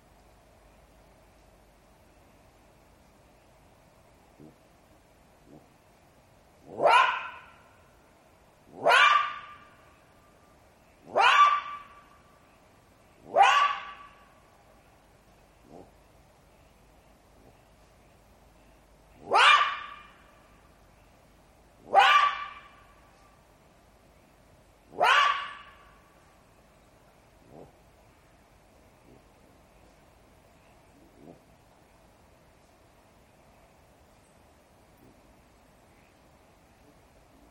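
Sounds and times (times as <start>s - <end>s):
jackal yelping: 6.7s - 7.6s, 8.7s - 9.7s, 11.1s - 12.0s, 13.3s - 14.2s, 19.2s - 20.3s, 21.9s - 22.8s, 24.9s - 25.9s.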